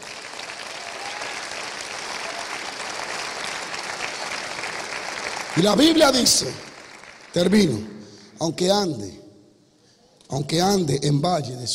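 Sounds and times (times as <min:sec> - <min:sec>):
crowd applause: 0:00.0 - 0:08.2
speech: 0:05.6 - 0:06.7, 0:07.4 - 0:09.2, 0:10.3 - 0:11.7.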